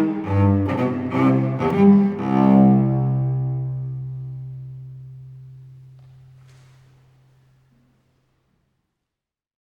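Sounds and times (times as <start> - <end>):
baroque suite gigue in C: 0.0 - 5.8.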